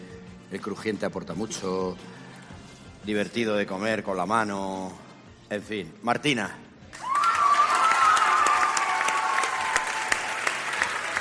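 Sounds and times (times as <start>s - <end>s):
speech: 0.5s - 2.2s, 3.0s - 6.6s
cheers and whistles: 6.9s - 11.1s
audience applause: 7.0s - 11.1s.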